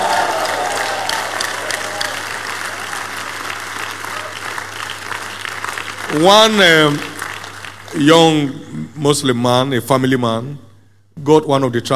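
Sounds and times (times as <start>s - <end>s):
audience clapping: 0.0s - 8.5s
speech: 6.1s - 7.1s, 7.9s - 10.6s, 11.2s - 11.9s.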